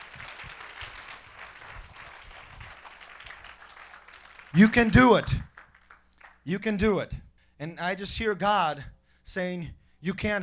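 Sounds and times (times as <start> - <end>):
audience clapping hands: 0.0 - 6.5
speech: 4.6 - 5.5, 6.4 - 10.4.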